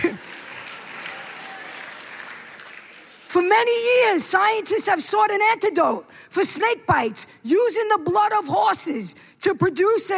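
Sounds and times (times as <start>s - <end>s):
audience applause: 0.0s - 3.4s
speech: 3.3s - 10.1s.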